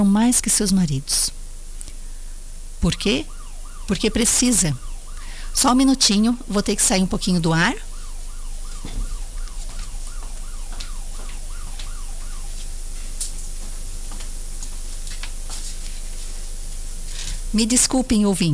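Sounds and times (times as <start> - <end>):
speech: 0.0 - 1.4, 2.8 - 3.3, 3.9 - 4.9, 5.6 - 7.9, 17.6 - 18.5
low steady hum: 0.0 - 18.5
perimeter wall alarm going off: 2.8 - 13.8.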